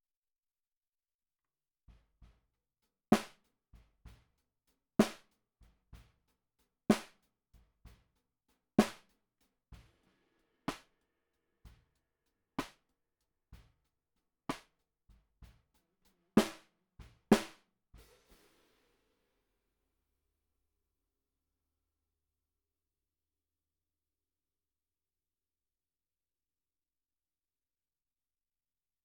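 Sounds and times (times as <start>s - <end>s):
snare drum recorded from the bottom: 3.1s - 4.3s, 5.0s - 6.2s, 6.9s - 7.3s, 8.8s - 11.0s, 12.6s - 12.8s, 14.5s - 14.7s, 16.4s - 19.0s.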